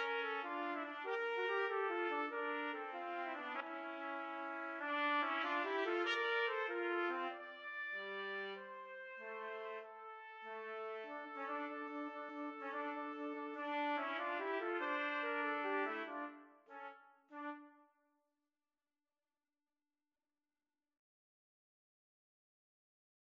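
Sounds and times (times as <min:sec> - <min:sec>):
trumpets playing a serenade: 0:00.0 - 0:17.7.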